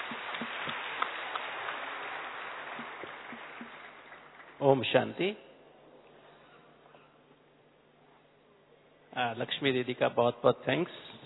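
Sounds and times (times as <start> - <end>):
audience applause welcoming a speaker: 0.0 - 4.6
speech: 4.6 - 5.5, 9.3 - 11.2.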